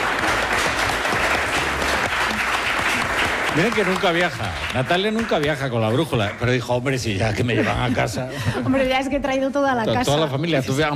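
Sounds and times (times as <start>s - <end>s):
audience applause: 0.0s - 7.2s
speech: 3.6s - 10.9s
laughter: 7.1s - 9.0s.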